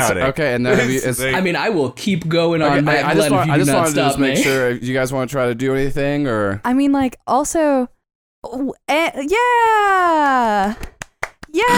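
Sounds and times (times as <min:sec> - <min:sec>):
speech: 0:00.0 - 0:10.9, 0:11.5 - 0:11.7
hand clapping: 0:10.2 - 0:11.7.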